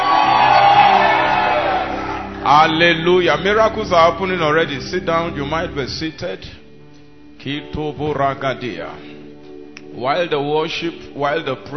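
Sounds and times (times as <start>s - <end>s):
church congregation shouting praise at a miracle service: 0.0s - 3.0s
speech: 2.6s - 6.6s, 7.4s - 9.1s, 9.9s - 11.7s.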